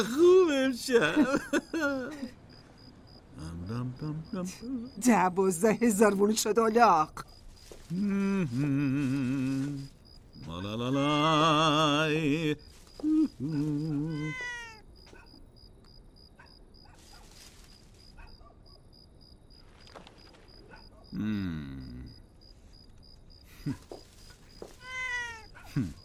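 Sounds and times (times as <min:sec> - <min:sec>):
laughter: 0:00.0 - 0:02.4, 0:23.5 - 0:24.0, 0:25.7 - 0:26.0
speech: 0:00.0 - 0:02.4, 0:03.4 - 0:14.5, 0:21.1 - 0:21.8, 0:23.7 - 0:23.9, 0:25.8 - 0:26.0
pet cat meowing: 0:13.6 - 0:14.8, 0:24.7 - 0:25.7.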